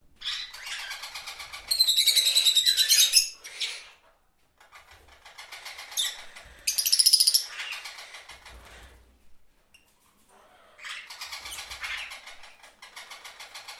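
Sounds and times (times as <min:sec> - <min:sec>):
parrot squawking: 0:00.2 - 0:04.1, 0:05.2 - 0:08.7, 0:10.4 - 0:13.7.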